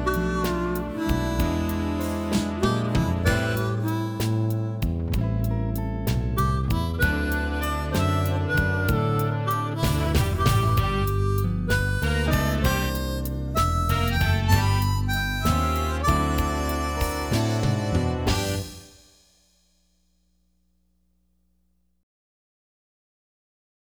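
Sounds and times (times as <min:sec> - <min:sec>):
twelve-bar blues harmonica solo: 0:00.0 - 0:19.0.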